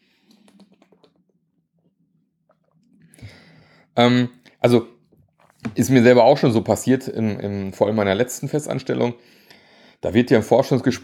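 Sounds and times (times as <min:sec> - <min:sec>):
person taking a quick sip of a drink: 0:00.2 - 0:01.3
breathy exhale: 0:03.2 - 0:03.9
speech: 0:04.0 - 0:04.9, 0:05.8 - 0:09.4, 0:10.0 - 0:11.0.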